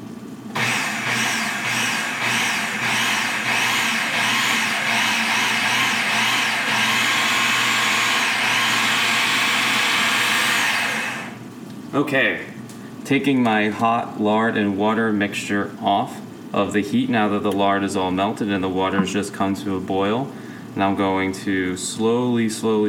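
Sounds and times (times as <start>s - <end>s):
food processor whizzing pastry dough: 0.5s - 11.4s
speech: 12.0s - 12.5s, 13.1s - 22.8s.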